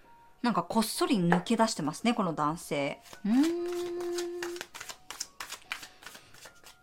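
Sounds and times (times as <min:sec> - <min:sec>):
speech: 0:00.4 - 0:04.2
tarot cards being drawn and handled: 0:03.0 - 0:06.8.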